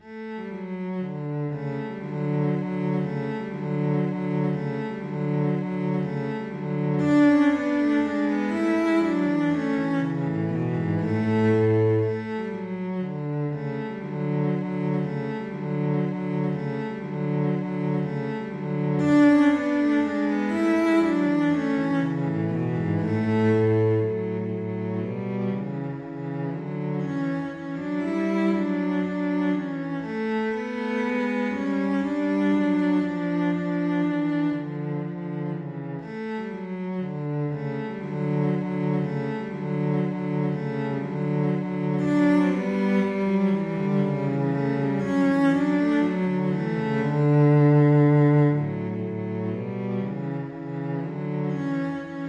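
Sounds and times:
cello duet playing a minuet: 0:00.0 - 0:52.2.

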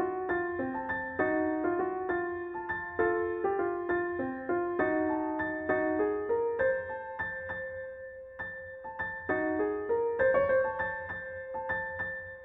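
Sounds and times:
piano: 0:00.0 - 0:12.4.

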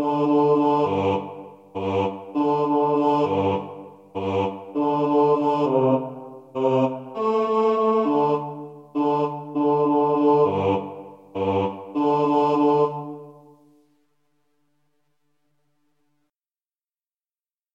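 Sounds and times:
choir singing karaoke bass: 0:00.0 - 0:13.7.

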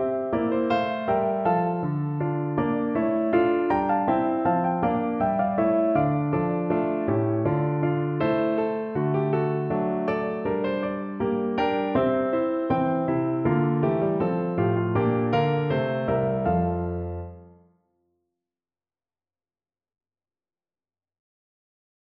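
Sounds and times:
piano hornpipe: 0:00.0 - 0:17.6.

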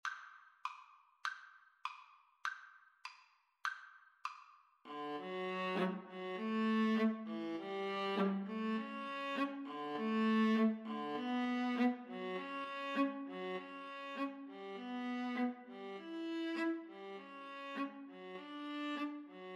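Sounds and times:
viola: 0:04.9 - 0:19.5.

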